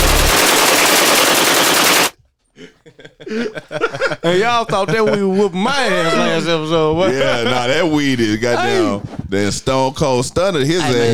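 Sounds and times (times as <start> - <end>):
machine gun fire: 0.0 - 2.2
laughter: 2.6 - 9.1
speech: 3.3 - 11.1.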